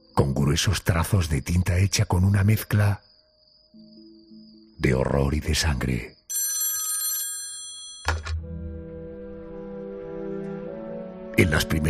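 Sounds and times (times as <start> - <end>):
speech: 0.2 - 3.1, 4.8 - 6.2, 11.4 - 11.8
old telephone bell ringing: 6.3 - 8.4.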